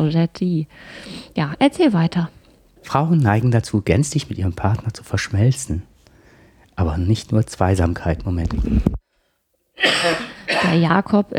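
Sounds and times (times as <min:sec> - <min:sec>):
speech: 0:00.0 - 0:05.9, 0:06.8 - 0:09.0, 0:09.8 - 0:11.3
harsh cough: 0:09.8 - 0:11.0.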